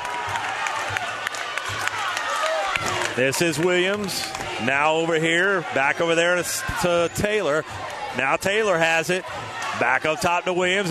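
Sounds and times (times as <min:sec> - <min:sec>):
crowd cheering at basketball game: 0:00.0 - 0:10.8
sharp claps and shouts from basketball crowd: 0:00.0 - 0:10.8
speech: 0:03.2 - 0:10.8.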